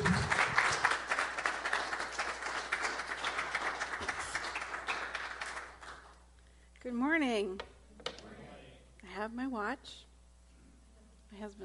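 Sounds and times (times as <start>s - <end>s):
audience applause welcoming a guest speaker: 0.0s - 6.1s
speech: 9.2s - 10.1s, 11.3s - 11.6s.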